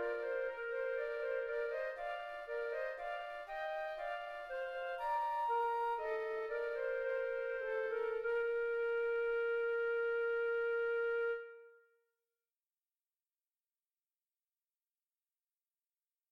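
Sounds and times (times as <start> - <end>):
two flutes playing a bourree: 0.0 - 11.8.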